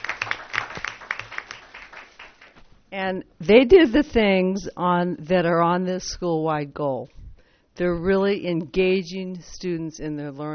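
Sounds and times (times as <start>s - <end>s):
audience applauding two third-grade teachers: 0.0s - 2.6s
speech: 2.9s - 7.2s, 7.8s - 10.5s.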